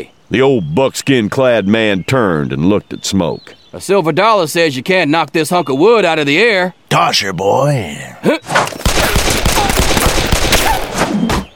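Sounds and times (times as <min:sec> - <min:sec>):
speech: 0:00.0 - 0:09.1
rapid gunshots: 0:08.8 - 0:11.3.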